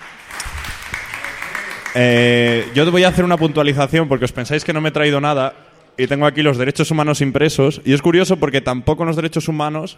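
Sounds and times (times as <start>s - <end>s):
audience applause for a guest speaker: 0.0s - 3.6s
speech: 2.0s - 9.9s.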